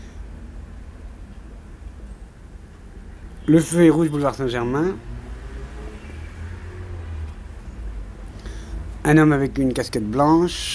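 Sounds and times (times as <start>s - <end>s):
Volvo turning in boulevard Saint-Germain traffic: 3.4s - 9.6s
speech: 3.5s - 5.2s, 9.1s - 10.7s.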